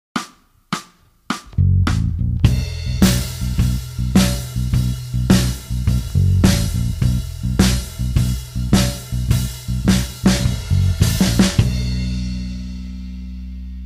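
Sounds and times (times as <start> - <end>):
slide backing track: 0.2 - 13.8.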